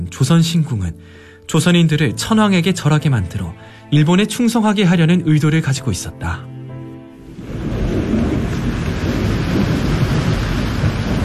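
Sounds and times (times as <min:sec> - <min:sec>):
speech: 0:00.1 - 0:06.5
deep low rumble of thunder: 0:07.2 - 0:11.2
heavy rain pouring: 0:07.2 - 0:11.2.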